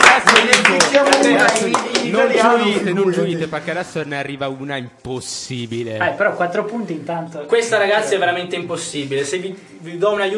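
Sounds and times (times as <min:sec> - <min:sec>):
studio audience clapping for quiz show contestants: 0:00.0 - 0:02.9
speech: 0:01.5 - 0:10.3.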